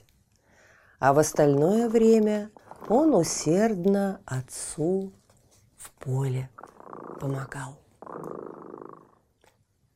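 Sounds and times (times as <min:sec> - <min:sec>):
speech: 0:01.0 - 0:05.2, 0:06.0 - 0:08.3
cat purring: 0:01.3 - 0:03.9, 0:06.4 - 0:09.4.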